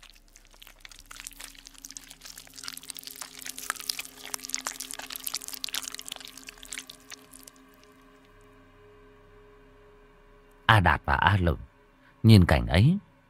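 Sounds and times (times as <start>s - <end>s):
squelching flesh being torn and eaten: 0.0s - 8.2s
speech: 10.7s - 11.6s, 12.2s - 13.1s.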